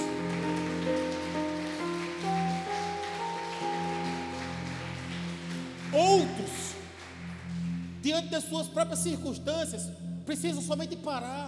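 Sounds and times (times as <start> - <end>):
crowd applauding: 0.0 - 8.3
sustained keyboard chords: 0.0 - 11.4
speech: 8.0 - 11.4.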